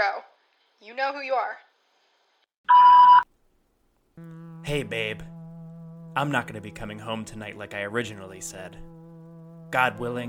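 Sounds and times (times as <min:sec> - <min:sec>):
speech: 0:00.0 - 0:01.7, 0:02.6 - 0:03.2, 0:04.2 - 0:05.3, 0:06.2 - 0:08.9, 0:09.7 - 0:10.2
voicemail beep: 0:02.7 - 0:03.2
low sound: 0:04.2 - 0:10.2.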